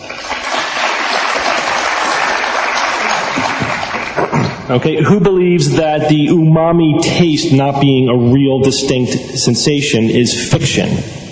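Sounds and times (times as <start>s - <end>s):
crowd clapping: 0.0s - 4.8s
speech: 4.7s - 11.3s.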